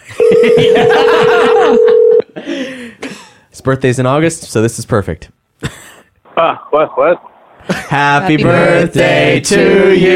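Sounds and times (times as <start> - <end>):
people laughing: 0.2 - 2.0, 5.7 - 8.6
steady telephone tone: 0.2 - 2.2
speech: 0.4 - 2.0, 3.6 - 5.4, 6.4 - 10.1.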